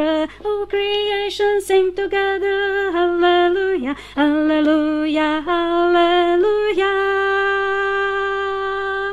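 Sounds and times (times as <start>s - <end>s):
alto voice singing: 0.0s - 9.0s.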